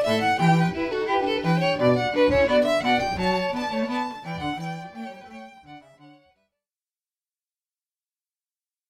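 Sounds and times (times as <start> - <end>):
string quartet playing a trio: 0.0 - 6.2.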